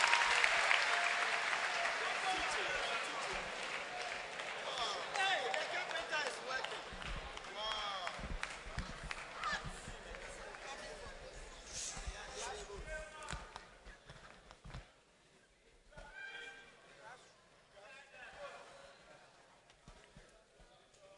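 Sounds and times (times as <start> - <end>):
audience clapping hands: 0.0 - 11.4.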